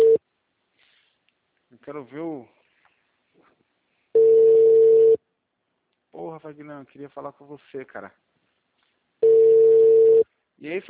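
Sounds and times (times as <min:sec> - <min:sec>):
telephone ringing tone while a caller waits for an answer: 0:00.0 - 0:00.2, 0:04.2 - 0:05.2, 0:09.2 - 0:10.2
speech: 0:01.9 - 0:02.6, 0:06.2 - 0:08.3, 0:10.6 - 0:10.8.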